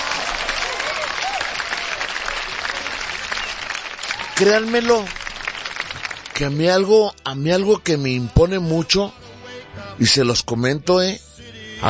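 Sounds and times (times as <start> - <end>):
audience applause: 0.0 - 6.9
speech: 4.4 - 5.2, 6.4 - 9.2, 10.0 - 11.2.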